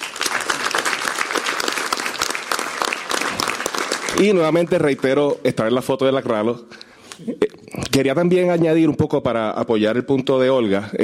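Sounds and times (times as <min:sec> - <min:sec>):
audience applause: 0:00.0 - 0:05.4
speech: 0:04.2 - 0:11.0.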